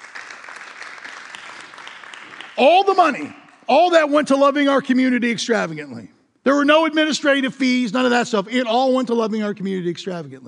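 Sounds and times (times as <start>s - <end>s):
crowd applauding: 0.0s - 3.7s
speech: 2.6s - 10.4s.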